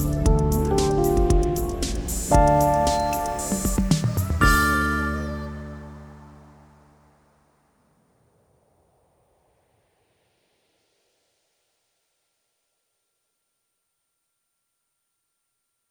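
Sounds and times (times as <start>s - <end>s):
instrumental music: 0.0s - 6.9s.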